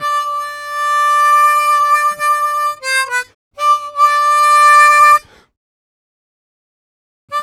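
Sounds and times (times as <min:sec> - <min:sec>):
harmonica in G: 0:00.0 - 0:05.4.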